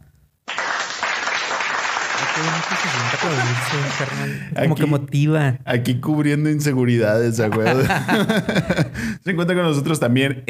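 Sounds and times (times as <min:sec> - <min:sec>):
hosts applauding: 0:00.5 - 0:04.4
laughter: 0:02.2 - 0:04.6, 0:07.5 - 0:09.1
speech: 0:02.4 - 0:10.4.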